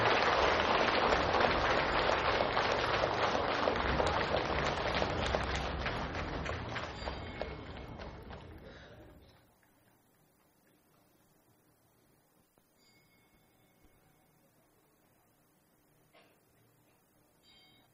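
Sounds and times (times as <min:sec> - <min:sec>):
audience applause: 0:00.0 - 0:09.5.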